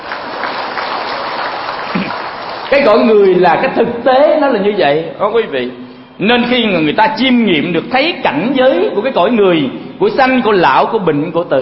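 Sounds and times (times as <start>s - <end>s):
audience applause at a Buddhist dharma talk: 0.0s - 3.2s
speech: 2.7s - 11.6s.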